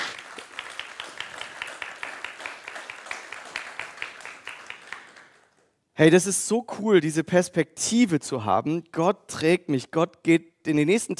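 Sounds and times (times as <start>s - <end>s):
audience applause: 0.0s - 5.6s
speech: 6.0s - 11.1s.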